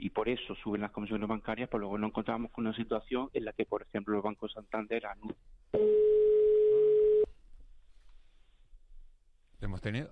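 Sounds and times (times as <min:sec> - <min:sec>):
speech: 0:00.0 - 0:06.2, 0:09.6 - 0:10.1
telephone busy tone after call dropped: 0:05.8 - 0:07.3.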